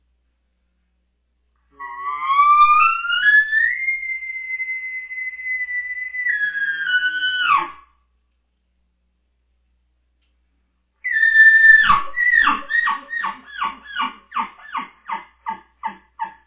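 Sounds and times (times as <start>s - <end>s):
bull elk bugling: 1.7s - 7.8s, 11.0s - 16.4s.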